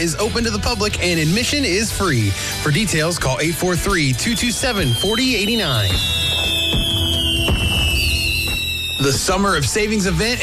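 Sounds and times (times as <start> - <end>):
speech: 0.0 - 6.2, 9.0 - 10.4
firework whistle dropping in pitch: 4.1 - 9.8
firework bangs with crackling at a night festival: 4.6 - 9.6.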